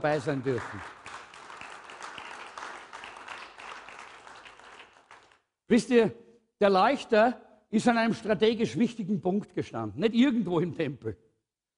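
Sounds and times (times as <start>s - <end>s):
speech: 0.0s - 1.0s, 5.7s - 11.2s
audience applause: 0.0s - 5.4s.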